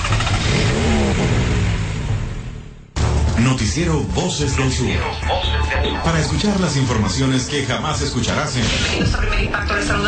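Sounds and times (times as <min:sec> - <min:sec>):
engine starting and revving: 0:00.0 - 0:05.2
speech: 0:03.6 - 0:10.0.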